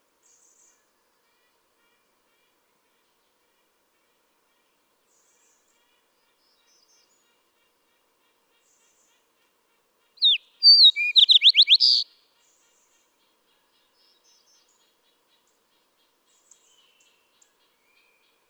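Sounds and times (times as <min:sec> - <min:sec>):
Fox sparrow singing: 0:10.2 - 0:12.0.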